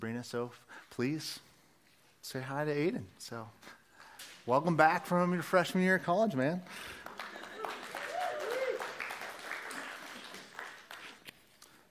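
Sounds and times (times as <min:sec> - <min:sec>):
speech: 0:00.2 - 0:01.5, 0:02.2 - 0:03.8, 0:04.4 - 0:07.3
audience clapping: 0:06.7 - 0:11.7.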